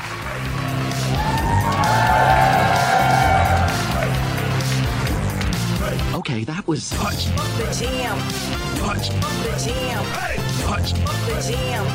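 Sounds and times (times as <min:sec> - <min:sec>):
audience applause and cheering: 0:00.0 - 0:05.9
speech: 0:06.7 - 0:11.9.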